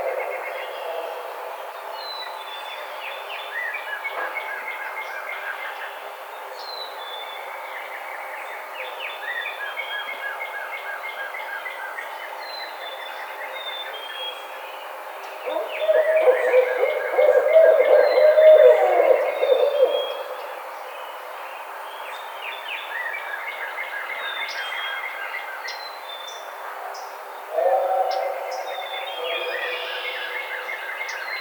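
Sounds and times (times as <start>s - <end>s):
Barred Owl calling: 15.4s - 20.5s, 27.5s - 30.7s.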